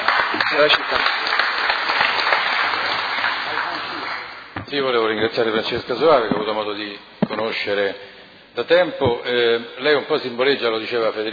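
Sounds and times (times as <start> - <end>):
audience applause: 0.0 - 4.6
speech: 0.6 - 1.3, 4.7 - 11.3.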